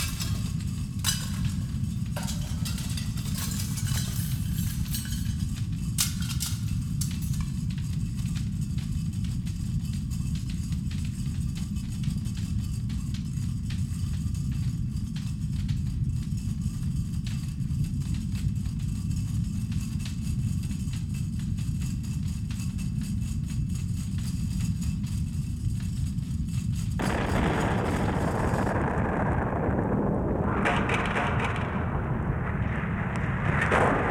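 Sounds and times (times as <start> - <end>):
building collapsing in an earthquake: 0.0 - 7.7, 27.0 - 34.0
earthquake: 0.0 - 34.0.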